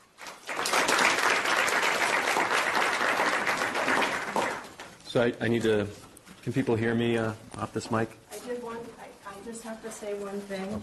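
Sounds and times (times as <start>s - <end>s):
audience applause welcoming a medical researcher: 0.0s - 4.8s
speech: 5.2s - 8.2s, 9.8s - 10.8s.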